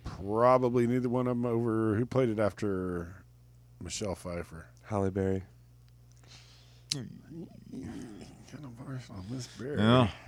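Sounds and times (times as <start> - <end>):
speech: 0.2 - 3.2, 3.8 - 5.5, 6.9 - 10.2
person imitating a big cat growl: 6.9 - 8.6.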